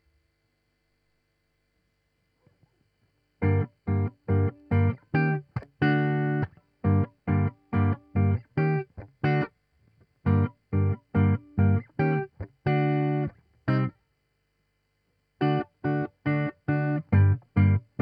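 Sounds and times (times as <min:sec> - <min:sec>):
guitar: 0:03.4 - 0:14.0, 0:15.4 - 0:18.0.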